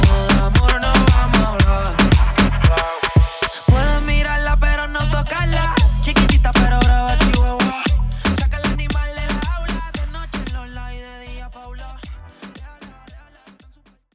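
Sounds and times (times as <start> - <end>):
intro outro music at 115 BPM: 0.0 - 4.9, 5.8 - 10.7.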